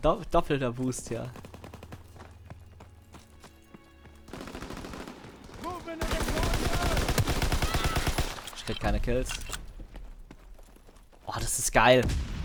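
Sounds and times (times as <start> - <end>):
speech: 0.0 - 1.5, 8.7 - 9.6, 11.3 - 12.3
rapid automatic gunfire in a video game: 4.3 - 8.5.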